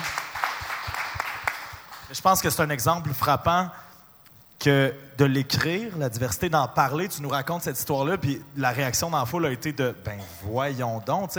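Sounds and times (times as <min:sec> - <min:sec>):
applause: 0:00.0 - 0:03.2
speech: 0:02.1 - 0:03.9, 0:04.6 - 0:11.3.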